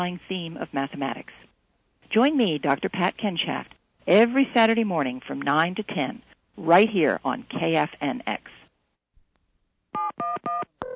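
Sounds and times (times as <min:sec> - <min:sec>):
speech: 0:00.0 - 0:01.5, 0:02.1 - 0:08.6
telephone keypad dialing tones: 0:10.0 - 0:10.9.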